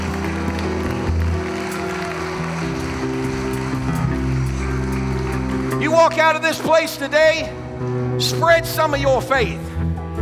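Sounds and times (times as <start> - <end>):
audience hand clapping: 0.0 - 7.4
speech: 6.0 - 7.6, 8.2 - 9.8.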